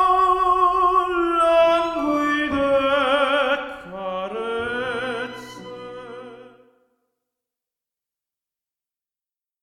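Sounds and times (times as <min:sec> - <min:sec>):
tenor voice singing: 0:00.0 - 0:06.7.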